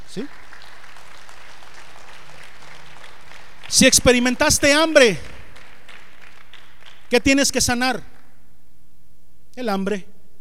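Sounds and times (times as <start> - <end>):
audience applause: 0.0 - 7.2
speech: 0.2 - 0.4, 3.7 - 5.3, 7.1 - 8.1, 9.6 - 10.1.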